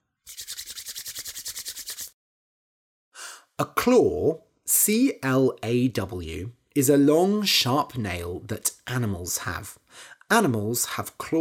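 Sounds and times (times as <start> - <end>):
hands rubbing briskly together to warm them: 0.2 - 2.2
speech: 3.6 - 11.3.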